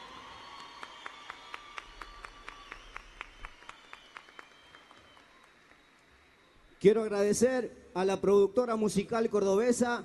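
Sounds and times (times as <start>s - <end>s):
audience applause for the musicians: 0.0s - 6.8s
speech: 6.8s - 10.0s.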